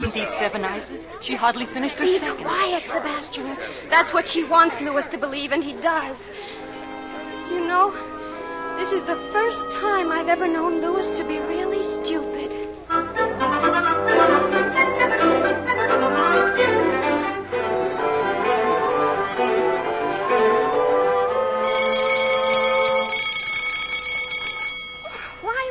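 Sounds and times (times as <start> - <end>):
busy noise: 0.0 - 25.6
speech: 0.1 - 6.6, 7.5 - 8.1, 8.8 - 13.4
school bell ringing: 21.6 - 25.6.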